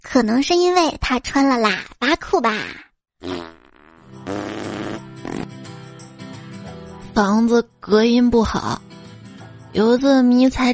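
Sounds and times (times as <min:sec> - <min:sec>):
speech: 0:00.2 - 0:03.5, 0:07.2 - 0:08.9, 0:09.7 - 0:10.7
loud fart: 0:03.2 - 0:05.6.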